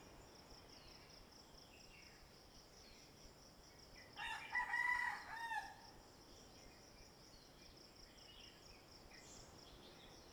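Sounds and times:
rooster crowing: 4.2 - 5.9.

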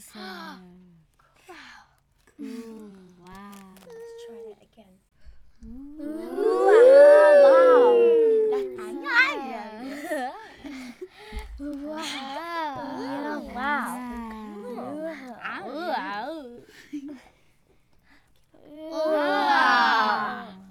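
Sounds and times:
group of children going uhh ahh: 5.6 - 17.2, 18.6 - 20.6.

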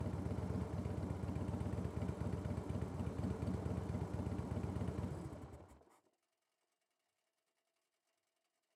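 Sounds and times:
2004 Harley Davidson Night Train motorcycle engine starting, idling and blipping, onboard: 0.0 - 5.9.

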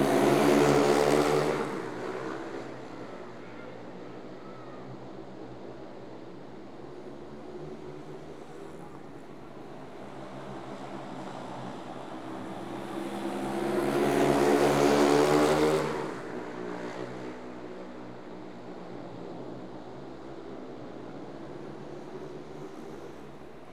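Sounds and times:
motorbikes racing: 0.0 - 2.9, 12.4 - 16.4.

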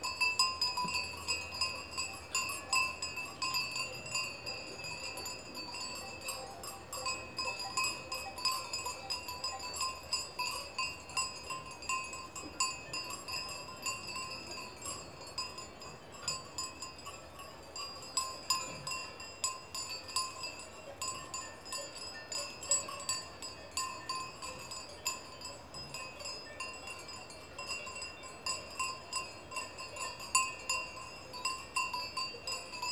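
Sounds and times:
small cowbells in Switzerland: 0.0 - 32.8.

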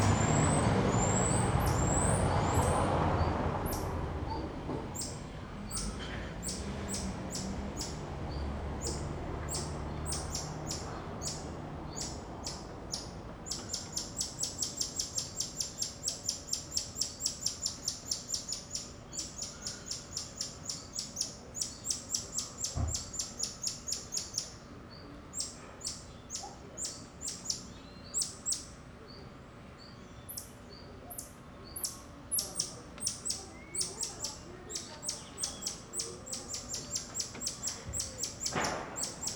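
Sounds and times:
bird chirping: 0.0 - 3.9, 5.0 - 29.2, 29.8 - 39.3
soft outdoor hum: 0.0 - 39.3.

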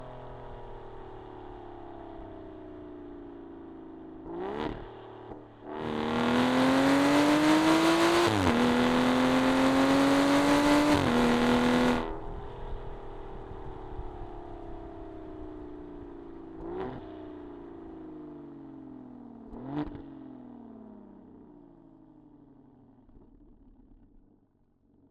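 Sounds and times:
Aston Martin Rapide S exhaust during medium drive and stops, left side: 4.2 - 18.0.

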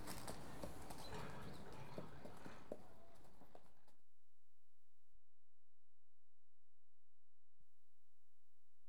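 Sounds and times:
unshod horse walking: 0.0 - 3.6.

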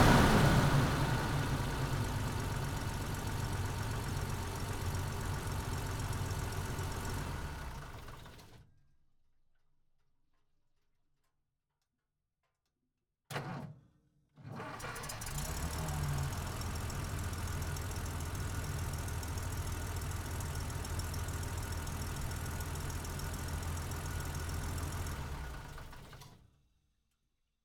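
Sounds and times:
M8 Greyhound armored car engine startup, blips, steady rpms in neutral and shutdown: 0.0 - 8.6, 14.6 - 26.4.

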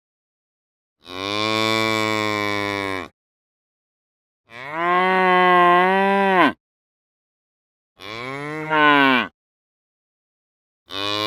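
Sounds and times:
cow mooing: 1.0 - 3.1, 4.5 - 6.6, 8.0 - 9.3, 10.9 - 11.2.

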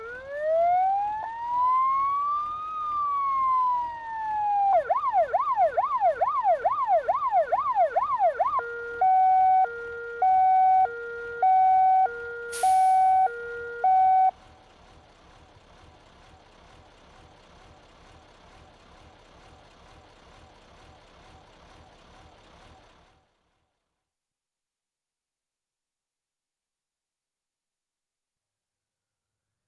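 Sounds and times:
fire engine electronic siren being tested: 0.0 - 14.4.

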